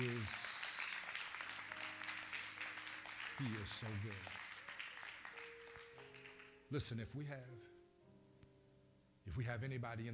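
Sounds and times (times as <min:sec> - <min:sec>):
church congregation clapping hands in praise: 0:00.0 - 0:07.0
speech: 0:03.4 - 0:04.4, 0:06.7 - 0:07.8, 0:09.3 - 0:10.1.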